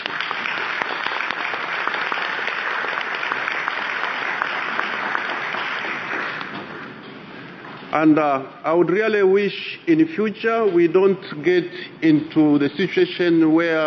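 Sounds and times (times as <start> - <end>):
audience applause in a large meeting hall: 0.0 - 7.0
speech: 8.0 - 13.8.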